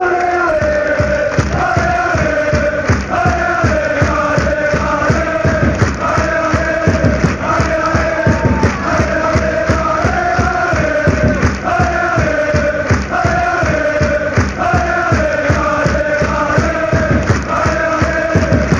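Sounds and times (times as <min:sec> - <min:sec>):
fans chanting: 0:00.0 - 0:18.7.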